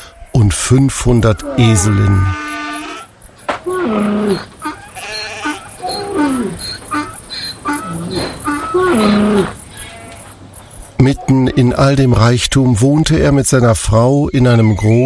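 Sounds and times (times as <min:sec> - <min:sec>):
speech: 0:00.3 - 0:02.4, 0:03.8 - 0:04.5, 0:11.3 - 0:15.0
goats bleating: 0:01.0 - 0:10.4.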